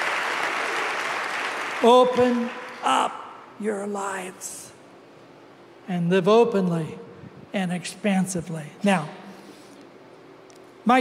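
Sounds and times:
audience clapping: 0.0s - 2.9s
speech: 1.8s - 4.8s, 5.9s - 9.2s.

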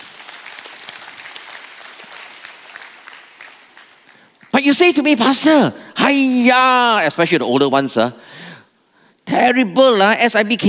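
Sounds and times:
audience clapping: 0.0s - 4.9s
speech: 4.6s - 8.3s, 9.4s - 10.6s.

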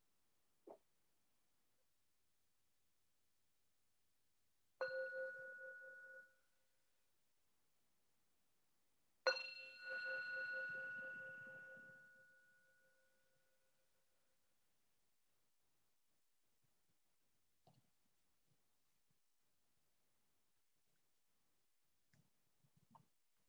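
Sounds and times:
meditation bell ringing: 4.8s - 6.5s, 9.3s - 13.4s.

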